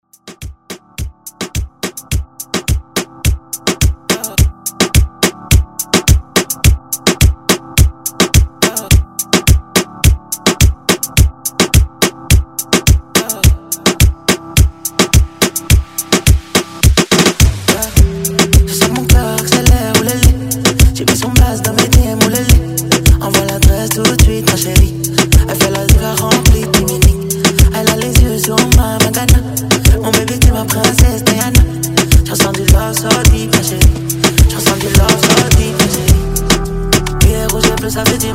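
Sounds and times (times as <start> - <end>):
Afro beat music: 0.0 - 38.3.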